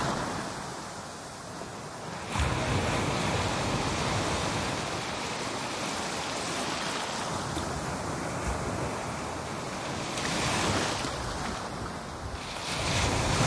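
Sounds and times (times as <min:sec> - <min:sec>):
Atlantic Ocean surf waves crashing on a beach: 0:00.0 - 0:13.4.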